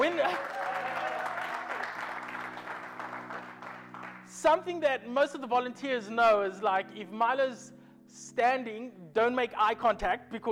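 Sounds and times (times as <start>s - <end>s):
audience clapping: 0.0s - 4.3s
speech: 4.4s - 10.5s.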